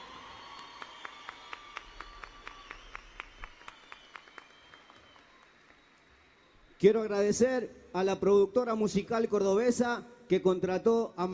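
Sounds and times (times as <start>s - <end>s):
audience applause for the musicians: 0.0s - 6.8s
speech: 6.8s - 11.3s.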